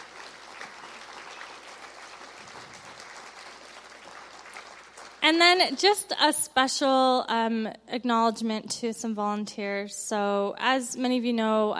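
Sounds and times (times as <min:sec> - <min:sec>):
audience applause for volunteers: 0:00.0 - 0:05.2
speech: 0:05.3 - 0:11.7.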